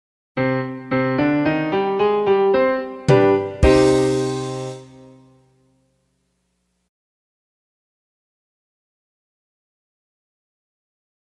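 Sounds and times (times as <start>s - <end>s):
music in C minor: 0.4s - 6.6s.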